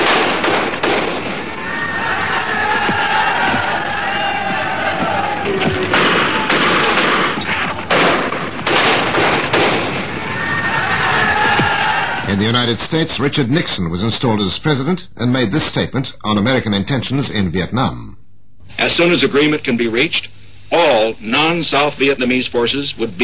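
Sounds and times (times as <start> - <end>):
gunfire in Ireland: 0.0 - 1.6, 5.7 - 10.2
shouting crowds: 1.2 - 7.8, 9.9 - 12.3
speech: 12.7 - 23.2.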